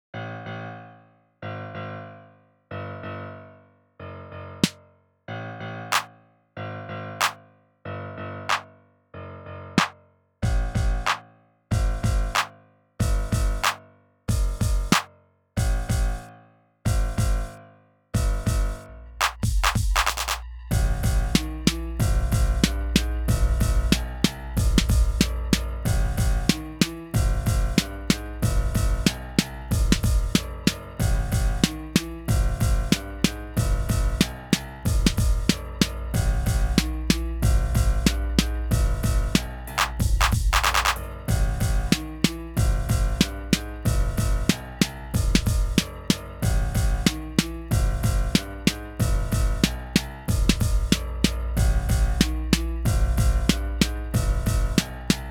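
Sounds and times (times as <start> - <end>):
music beat: 9.8 - 16.2, 16.9 - 17.6, 18.2 - 55.2.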